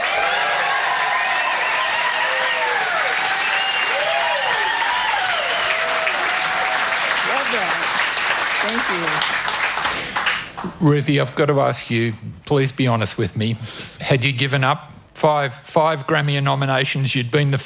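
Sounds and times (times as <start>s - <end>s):
audience applause at a Blue Mountains music festival: 0.0s - 10.8s
speech: 8.6s - 9.4s, 10.8s - 17.6s.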